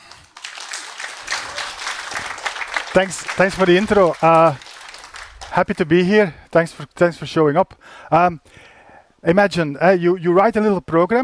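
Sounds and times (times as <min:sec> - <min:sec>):
audience applause welcoming a speaker for a talk on generative art: 0:00.0 - 0:06.0
speech: 0:02.9 - 0:04.6, 0:05.6 - 0:11.2.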